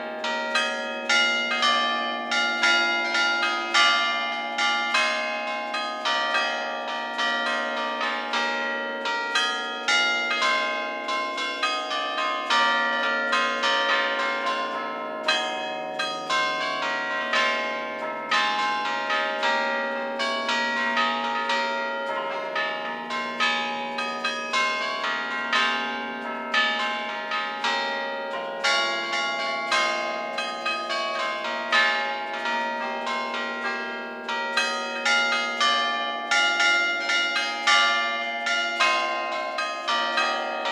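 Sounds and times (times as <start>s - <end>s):
church bells ringing in Isoverde, Genova, Liguria: 0.0s - 40.6s.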